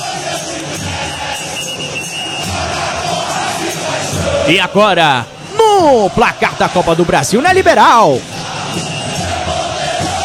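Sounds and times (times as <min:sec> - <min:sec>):
football crowd shouting and celebrating: 0:00.0 - 0:10.2
speech: 0:04.5 - 0:08.9.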